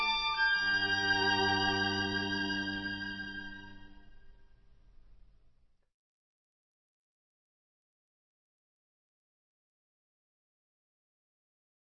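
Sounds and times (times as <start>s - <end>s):
string quartet: 0.0s - 4.0s.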